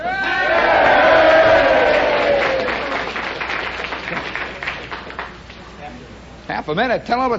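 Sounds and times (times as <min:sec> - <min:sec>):
crowd cheering: 0:00.0 - 0:05.1
speech: 0:06.7 - 0:07.3.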